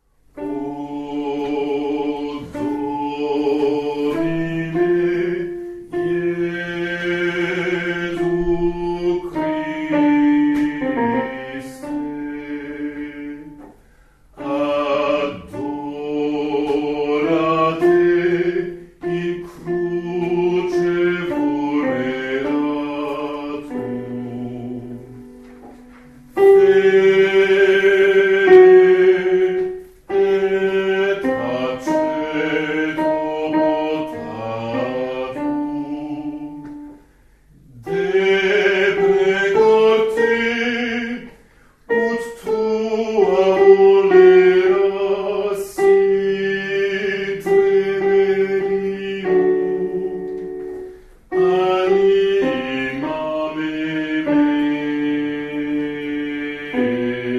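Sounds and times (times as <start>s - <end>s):
altos singing: 0.0s - 57.3s.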